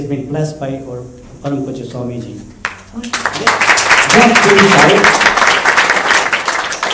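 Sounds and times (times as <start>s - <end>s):
speech: 0.0s - 5.6s
crowd applauding: 2.6s - 6.9s.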